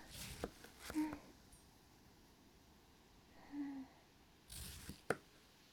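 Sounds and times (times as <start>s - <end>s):
watermelon being cut: 0.1s - 1.1s, 4.5s - 5.2s.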